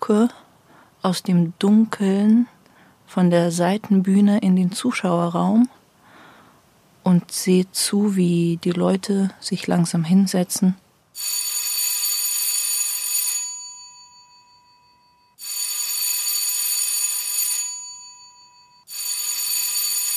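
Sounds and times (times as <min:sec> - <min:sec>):
speech: 0:00.1 - 0:00.4, 0:01.0 - 0:05.8, 0:07.0 - 0:10.8
electric theatre bell signalling performance start: 0:11.2 - 0:20.1.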